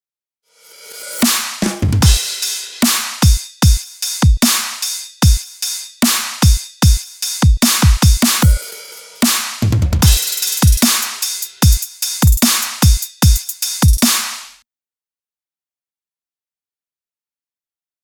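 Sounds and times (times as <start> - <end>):
drums: 0.6 - 14.6.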